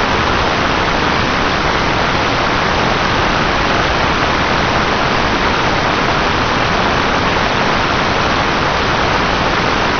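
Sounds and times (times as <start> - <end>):
stationary noise: 0.0 - 9.9.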